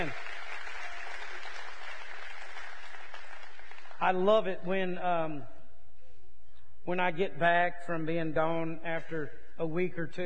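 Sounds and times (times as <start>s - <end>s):
audience applause: 0.0s - 4.0s
speech: 4.0s - 5.6s, 6.8s - 10.2s.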